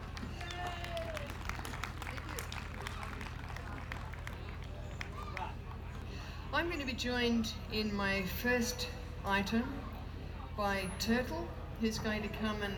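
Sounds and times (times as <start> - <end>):
audience applause: 0.0 - 6.0
speech: 6.5 - 9.9, 10.6 - 12.7.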